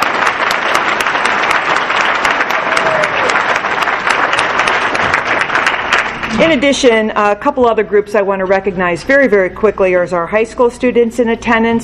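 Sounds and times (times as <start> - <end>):
crowd applause: 0.0 - 6.4
speech: 6.4 - 11.8.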